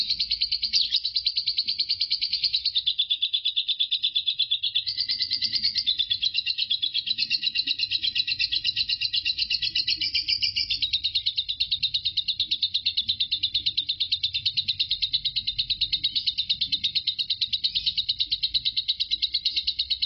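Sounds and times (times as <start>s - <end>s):
lovebird chattering: 0.0s - 20.0s.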